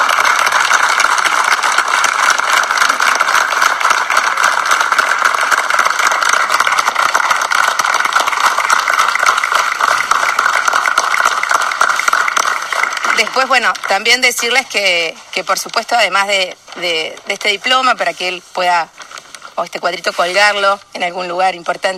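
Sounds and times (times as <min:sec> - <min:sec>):
crowd applauding: 0:00.0 - 0:14.5
speech: 0:13.2 - 0:19.0, 0:19.6 - 0:21.9.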